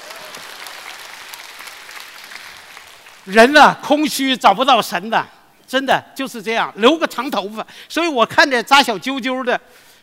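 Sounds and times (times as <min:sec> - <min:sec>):
audience applause: 0:00.0 - 0:03.3
speech: 0:03.2 - 0:09.9.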